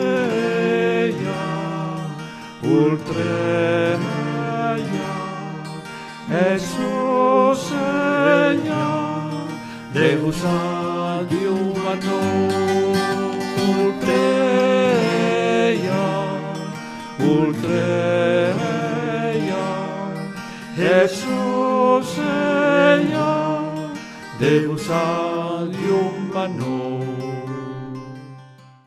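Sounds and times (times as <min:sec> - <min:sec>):
person singing a chant: 0:00.0 - 0:28.5
guitar: 0:00.0 - 0:28.8.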